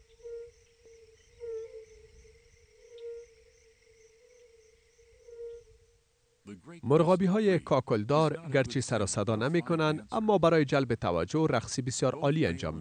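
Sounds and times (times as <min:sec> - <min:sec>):
male frogs calling in spring: 0:00.0 - 0:06.4
speech: 0:06.6 - 0:12.8.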